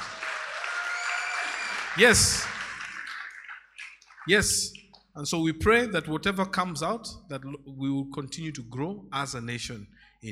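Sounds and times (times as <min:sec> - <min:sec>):
faint cheers: 0:00.0 - 0:03.4
audience hand clapping: 0:00.0 - 0:05.1
speech: 0:02.0 - 0:02.5, 0:04.2 - 0:10.3.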